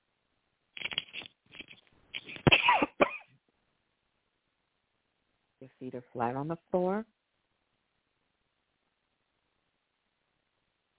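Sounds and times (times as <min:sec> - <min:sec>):
person coughing dry coughs: 0:02.4 - 0:03.3
speech: 0:05.8 - 0:07.2.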